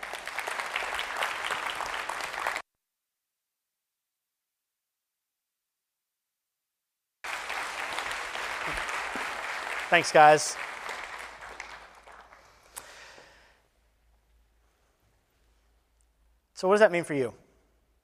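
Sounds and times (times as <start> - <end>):
audience applause welcoming a couple onto a stage: 0.0 - 2.6, 7.2 - 13.5
speech: 9.9 - 10.7, 16.6 - 17.4.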